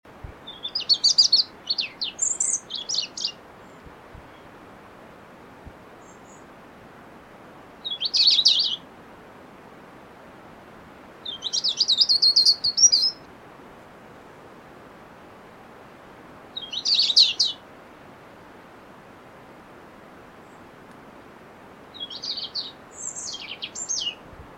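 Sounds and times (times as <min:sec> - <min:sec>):
hiss: 0:00.0 - 0:24.5
European robin singing: 0:00.4 - 0:04.5, 0:06.0 - 0:06.5, 0:07.8 - 0:08.8, 0:11.2 - 0:13.3, 0:16.6 - 0:17.6, 0:21.9 - 0:24.2.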